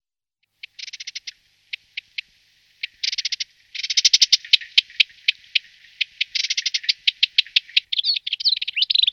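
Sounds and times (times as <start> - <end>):
Rüppell's warbler chattering: 0.6 - 2.2, 2.8 - 9.1.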